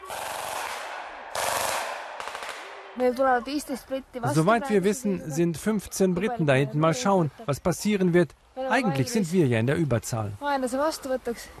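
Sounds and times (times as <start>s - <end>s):
rifle gunfire with blank training ammunition: 0.1s - 2.8s
speech: 3.0s - 11.5s.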